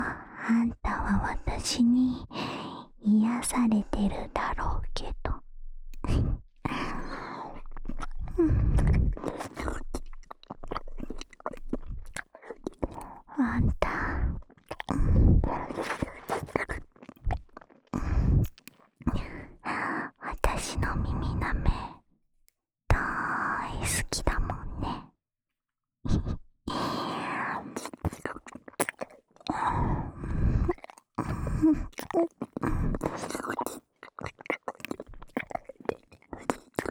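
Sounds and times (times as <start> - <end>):
person whispering: 0.0 - 5.4, 6.0 - 17.4, 18.0 - 22.0, 22.9 - 25.0, 26.1 - 36.8
left ear licking: 7.7 - 19.1, 27.8 - 29.6, 30.6 - 36.8.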